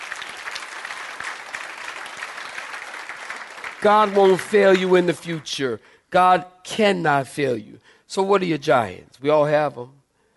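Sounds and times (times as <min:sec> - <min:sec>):
audience clapping: 0:00.0 - 0:05.7
speech: 0:03.8 - 0:10.0.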